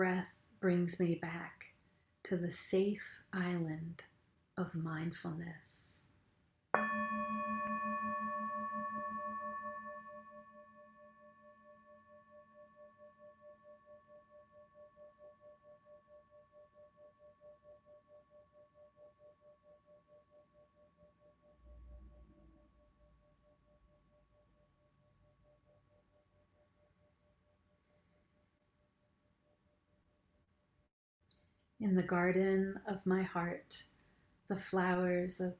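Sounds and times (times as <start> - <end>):
speech: 0.0 - 6.0, 6.8 - 7.6, 31.8 - 33.9, 34.5 - 35.5
mindfulness bell ringing: 6.8 - 12.0.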